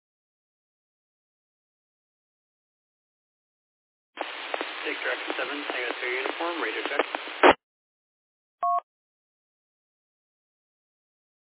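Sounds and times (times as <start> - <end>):
radio static hiss: 4.2 - 7.6
voice talking over band-limited radio transmission: 4.8 - 7.6
two-tone electronic beep: 8.6 - 8.8.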